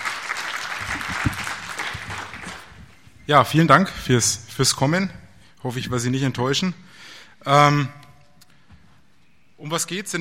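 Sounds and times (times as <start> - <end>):
conference audience applauding a speaker: 0.0 - 2.9
speech: 3.3 - 8.0, 9.6 - 10.1.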